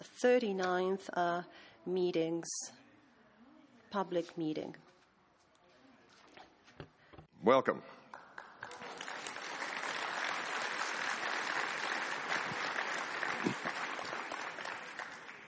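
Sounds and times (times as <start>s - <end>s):
speech: 0.2s - 2.8s, 3.9s - 4.8s, 6.8s - 8.0s
audience applause: 8.1s - 15.4s.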